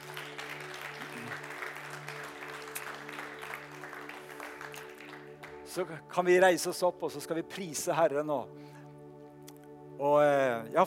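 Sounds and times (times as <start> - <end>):
audience applause: 0.0 - 5.8
speech: 5.8 - 8.6, 10.0 - 10.8.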